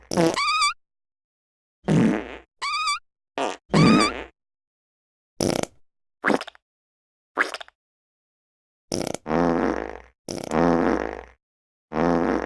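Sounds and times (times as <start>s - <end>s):
funny farting: 0.0s - 0.7s, 1.9s - 2.5s, 3.4s - 4.3s, 5.4s - 6.4s, 8.9s - 12.4s.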